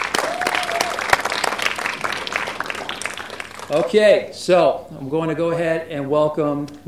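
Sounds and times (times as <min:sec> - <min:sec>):
audience applause: 0:00.0 - 0:04.1
speech: 0:03.7 - 0:06.8.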